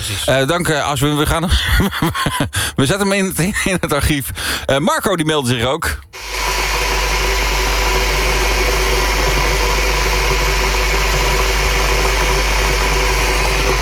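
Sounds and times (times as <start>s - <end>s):
speech: 0.1s - 6.4s
laughter: 1.5s - 2.6s
electric kettle heating water for coffee: 6.2s - 13.8s.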